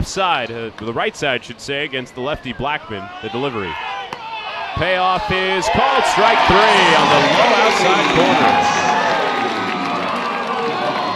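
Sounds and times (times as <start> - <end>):
speech: 0.0 - 4.0, 4.8 - 9.0
baseball crowd cheering in Fayetteville: 3.0 - 11.1.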